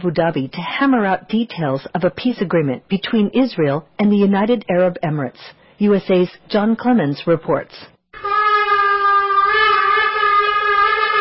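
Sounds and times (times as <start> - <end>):
speech: 0.0 - 7.9
shofar ram's horn being blown at the St Regis Hotel in Abu Dhabi: 8.2 - 11.2.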